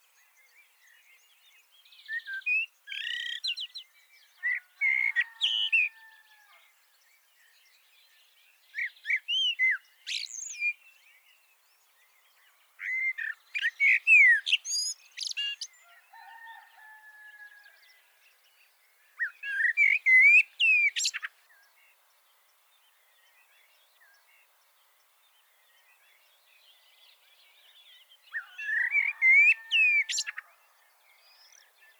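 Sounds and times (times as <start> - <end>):
common blackbird singing: 2.0 - 5.9, 8.1 - 10.8, 12.8 - 15.8, 19.2 - 21.7, 25.7 - 31.9.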